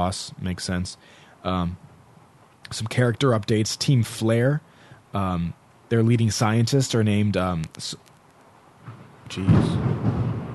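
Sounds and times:
speech: 0.0 - 1.9, 2.7 - 8.1, 9.3 - 10.2
thunder rumbling: 8.8 - 10.5.

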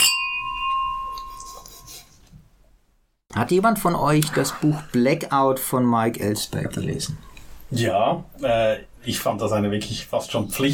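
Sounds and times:
wine glasses clinking in a toast: 0.0 - 1.9
speech: 3.3 - 10.7.

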